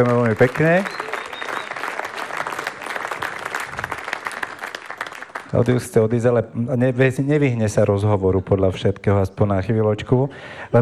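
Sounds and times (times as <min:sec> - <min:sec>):
speech: 0:00.0 - 0:01.1, 0:05.5 - 0:10.8
audience applause: 0:00.0 - 0:06.0.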